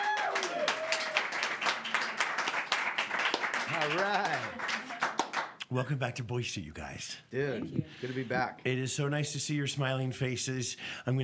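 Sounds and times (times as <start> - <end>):
live audience applauding and cheering: 0.0 - 5.6
speech: 3.8 - 4.8, 5.7 - 11.2.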